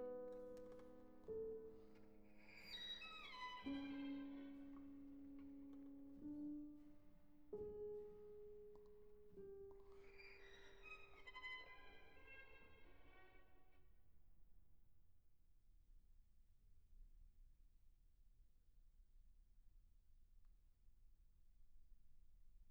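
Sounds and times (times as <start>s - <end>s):
violin and piano piece: 0.0s - 14.0s.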